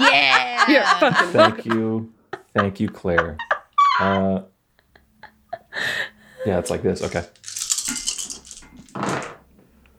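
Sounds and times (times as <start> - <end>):
laughter: 0.0 - 6.7
speech: 0.7 - 4.5, 5.8 - 7.4
dice clattering across a hard surface: 7.0 - 9.0.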